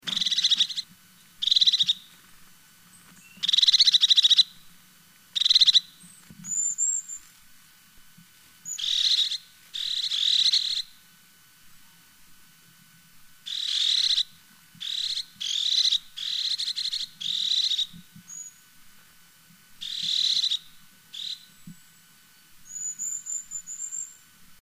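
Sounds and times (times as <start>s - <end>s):
crested tit calling: 0.0s - 2.1s, 2.9s - 4.6s, 5.4s - 7.2s, 8.7s - 11.0s, 13.5s - 18.6s, 19.8s - 21.8s, 22.6s - 24.2s.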